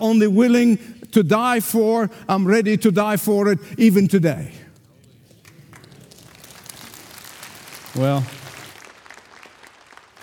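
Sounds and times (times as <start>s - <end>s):
speech: 0.0s - 4.6s, 8.0s - 8.4s
audience clapping: 5.3s - 10.2s.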